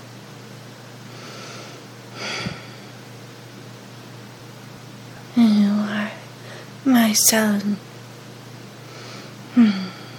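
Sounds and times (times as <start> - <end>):
faint steady hum: 0.0 - 10.1
woman breathing hard: 1.1 - 3.0, 8.8 - 10.1
speech: 7.1 - 7.9.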